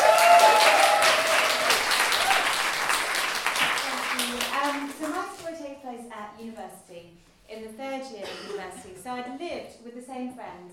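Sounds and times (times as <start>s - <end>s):
audience applause: 0.0s - 5.2s
speech: 6.7s - 10.7s.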